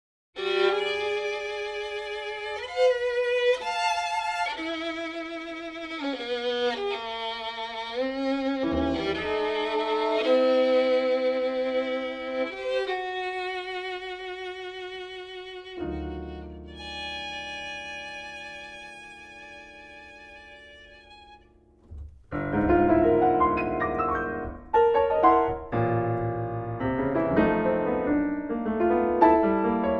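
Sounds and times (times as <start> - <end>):
violin in a sonata: 0.4 - 26.0
piano in a sonata: 0.4 - 29.9.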